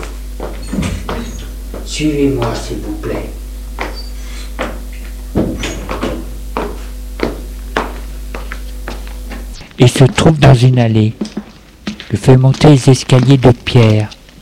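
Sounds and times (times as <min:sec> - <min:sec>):
door being opened: 0:00.5 - 0:01.5, 0:05.3 - 0:06.3
speech: 0:02.0 - 0:03.4, 0:09.8 - 0:11.3, 0:12.1 - 0:14.1.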